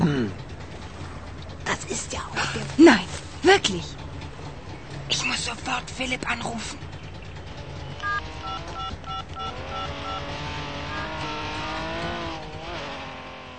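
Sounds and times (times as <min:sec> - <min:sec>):
Porsche and Trabant car engine drone: 0:00.0 - 0:13.5
speech: 0:03.6 - 0:04.0, 0:06.0 - 0:06.8
short high beeping tones: 0:08.0 - 0:10.3.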